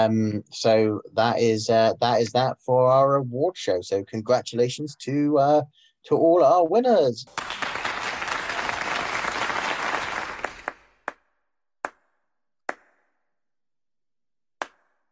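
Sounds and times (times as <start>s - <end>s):
speech: 0.0s - 7.6s
audience clapping: 7.3s - 11.2s.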